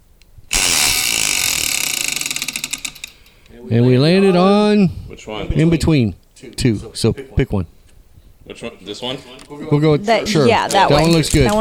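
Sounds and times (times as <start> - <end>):
spinning wheel clicking: 0.5 - 3.5
speech: 3.6 - 7.8, 8.5 - 11.6.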